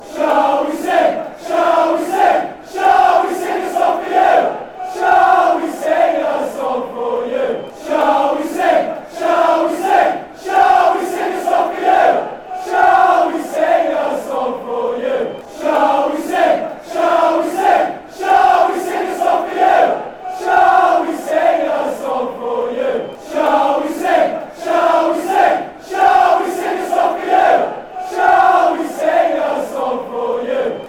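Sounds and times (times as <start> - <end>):
fans chanting: 0.0 - 30.8.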